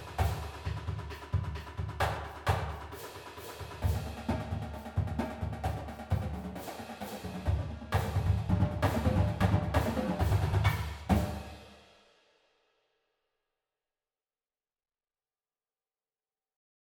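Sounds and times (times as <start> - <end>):
percussion music: 0.0 - 11.8.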